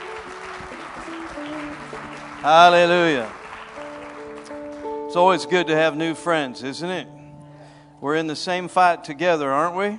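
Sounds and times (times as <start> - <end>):
audience clapping hands: 0.0 - 5.4
speech: 2.4 - 3.4, 5.2 - 7.2, 8.0 - 9.9.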